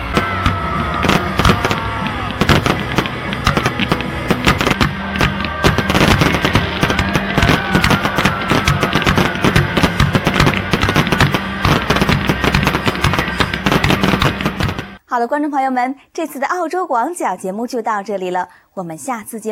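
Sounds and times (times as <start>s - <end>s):
farewell fireworks display in Australia crackling and bursting: 0.1s - 15.0s
speech: 15.2s - 19.5s.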